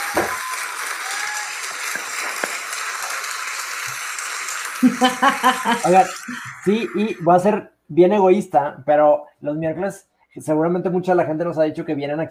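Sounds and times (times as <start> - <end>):
audience applause: 0.0 - 7.3
laughter: 4.8 - 7.3
speech: 4.8 - 12.2.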